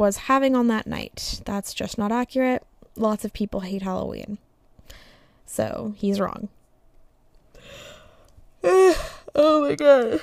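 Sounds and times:
speech: 0:00.0 - 0:06.6, 0:08.7 - 0:10.2
person yawning: 0:08.6 - 0:10.2.

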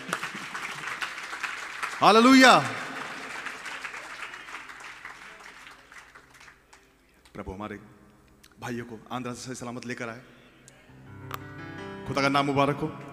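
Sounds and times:
audience clapping in praise: 0:00.0 - 0:07.4
speech: 0:02.0 - 0:02.8, 0:07.5 - 0:08.0, 0:08.6 - 0:10.4, 0:12.1 - 0:13.0.

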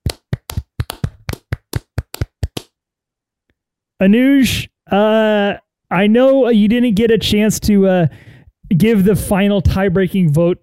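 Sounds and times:
hand clapping: 0:00.0 - 0:02.8
speech: 0:04.0 - 0:10.6.

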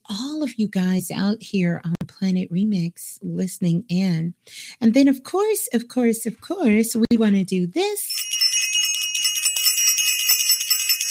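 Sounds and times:
speech: 0:00.1 - 0:08.3
bell ringing: 0:08.1 - 0:11.1.

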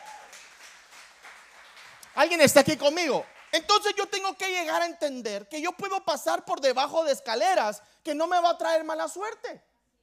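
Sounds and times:
audience applause: 0:00.0 - 0:03.6
speech: 0:02.2 - 0:09.7.

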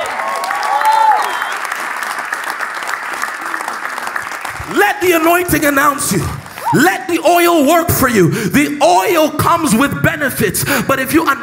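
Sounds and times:
audience clapping: 0:00.0 - 0:07.7
speech: 0:05.0 - 0:11.4.

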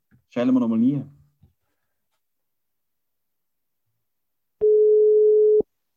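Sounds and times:
speech: 0:00.4 - 0:01.2
telephone ringing tone during call attempt: 0:04.6 - 0:05.6.

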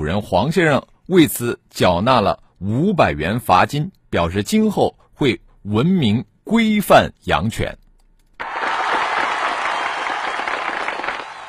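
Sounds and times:
speech: 0:00.0 - 0:07.8
applause: 0:08.4 - 0:11.4.

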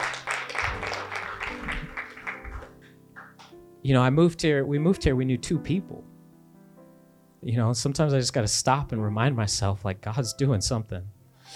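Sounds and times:
audience clapping hands: 0:00.0 - 0:03.6
speech: 0:03.8 - 0:06.1, 0:07.4 - 0:11.5.

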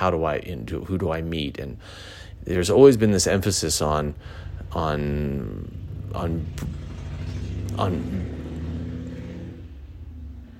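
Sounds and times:
speech: 0:00.0 - 0:06.8, 0:07.8 - 0:08.3
motorcycle passing by: 0:04.2 - 0:10.5.

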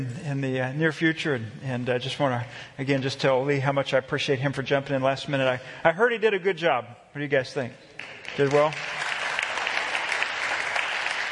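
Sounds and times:
speech: 0:00.0 - 0:09.0
audience applause: 0:08.0 - 0:11.3.

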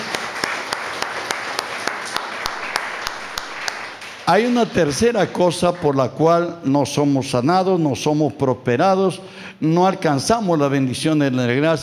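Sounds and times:
audience applause: 0:00.0 - 0:06.0
speech: 0:04.3 - 0:11.8.

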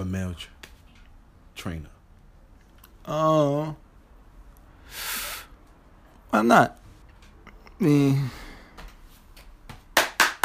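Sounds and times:
speech: 0:00.1 - 0:00.6, 0:01.6 - 0:02.0, 0:03.1 - 0:03.8, 0:06.3 - 0:06.8, 0:07.8 - 0:08.4
hand clapping: 0:08.8 - 0:10.4.

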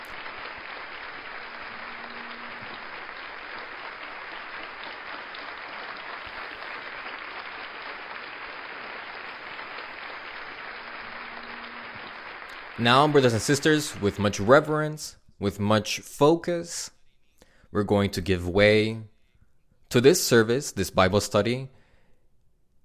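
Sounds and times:
audience applause: 0:00.0 - 0:14.8
speech: 0:12.8 - 0:17.0, 0:17.7 - 0:19.1, 0:19.9 - 0:21.8.

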